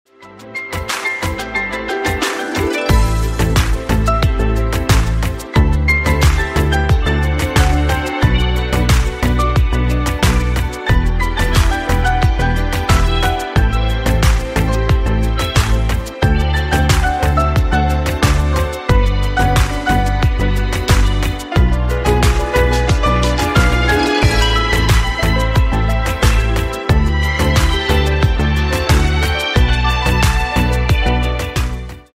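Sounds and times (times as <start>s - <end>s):
piano remix: 0.1s - 32.1s.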